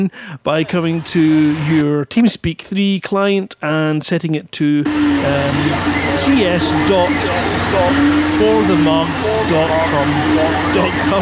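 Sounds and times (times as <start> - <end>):
speech: 0.0 - 11.1
Hoover vacuum cleaner running heard over a voice chat: 0.7 - 1.8, 4.9 - 11.1.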